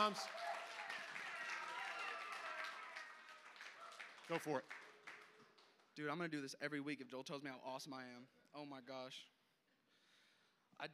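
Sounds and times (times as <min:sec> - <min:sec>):
speech: 0:00.0 - 0:00.5, 0:04.3 - 0:04.8, 0:06.0 - 0:09.3
audience applause and hand clapping: 0:00.0 - 0:06.2.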